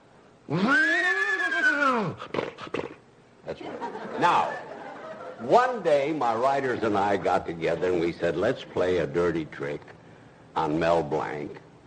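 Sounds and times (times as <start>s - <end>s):
speech: 0.5s - 0.8s, 4.2s - 4.6s, 5.4s - 10.0s, 10.6s - 11.6s
voice imitating a horse whinny: 0.5s - 3.0s
laughter: 3.5s - 5.6s.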